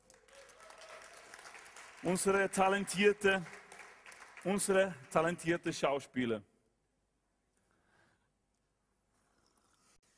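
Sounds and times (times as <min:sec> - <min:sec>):
audience applause: 0:00.0 - 0:05.7
speech: 0:02.0 - 0:03.6, 0:04.4 - 0:06.5.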